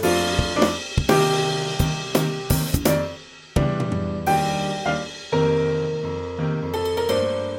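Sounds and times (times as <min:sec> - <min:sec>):
drum: 0:00.0 - 0:07.4.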